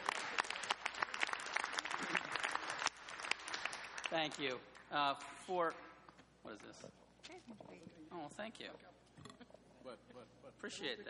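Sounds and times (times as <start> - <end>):
audience applause: 0.0 - 4.8
speech: 4.1 - 8.9, 9.8 - 11.0.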